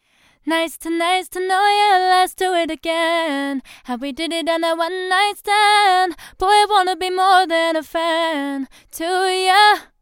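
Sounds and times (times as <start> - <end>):
female vocals: 0.4 - 10.0.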